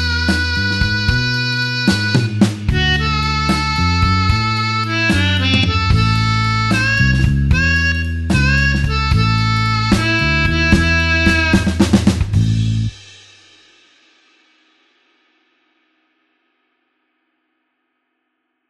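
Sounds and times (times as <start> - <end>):
blues harmonica in A playing slowly: 0.0 - 12.9.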